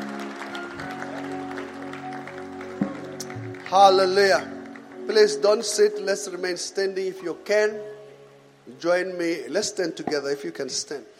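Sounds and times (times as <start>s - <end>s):
audience clapping: 0.0s - 5.9s
speech: 3.7s - 8.0s, 8.7s - 11.1s.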